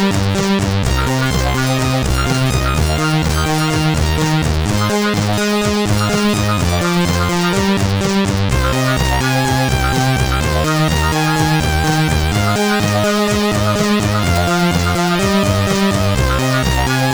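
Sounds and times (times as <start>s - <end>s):
SID chip music on CSG8580R5: 0.0s - 17.1s.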